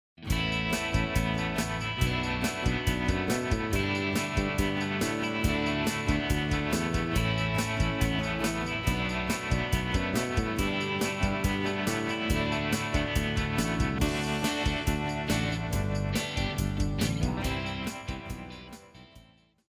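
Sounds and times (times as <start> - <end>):
rock music: 0.2 - 19.4.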